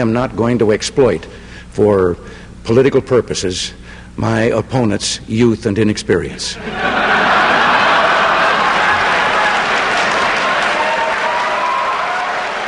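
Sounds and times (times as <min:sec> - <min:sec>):
speech: 0:00.0 - 0:07.0
debate audience laughter: 0:06.6 - 0:10.8
debate audience applause: 0:06.7 - 0:12.6.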